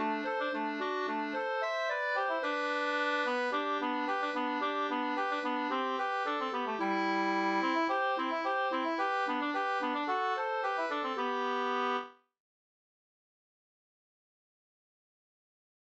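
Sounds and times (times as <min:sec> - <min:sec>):
Danish folk dance music: 0:00.0 - 0:11.9.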